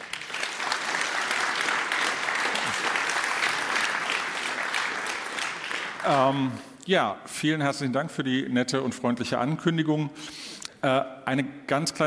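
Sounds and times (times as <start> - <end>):
audience applause: 0.0 - 6.6
speech: 6.0 - 12.0.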